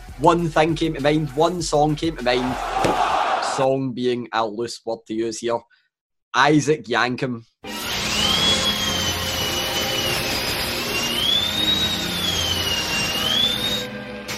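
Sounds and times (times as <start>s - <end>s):
speech: 0.2s - 3.0s, 3.6s - 7.5s
dentist drill whining: 7.7s - 13.9s.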